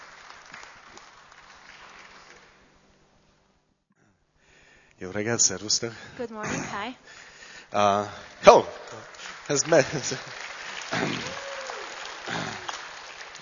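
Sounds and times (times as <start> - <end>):
audience clapping: 0.0 - 2.8, 7.8 - 13.4
speech: 5.0 - 11.3.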